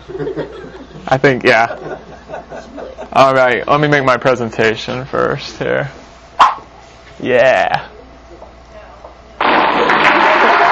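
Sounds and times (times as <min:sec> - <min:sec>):
laughter: 0:00.0 - 0:03.2, 0:09.9 - 0:10.6
speech: 0:00.1 - 0:06.6, 0:07.2 - 0:07.9
applause: 0:09.4 - 0:10.6.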